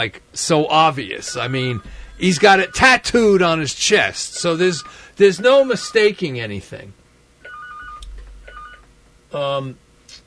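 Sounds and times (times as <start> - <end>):
speech: 0.0 - 7.0, 9.3 - 9.8
low hum: 1.0 - 5.4
telephone ringing: 1.1 - 6.2, 7.4 - 8.8.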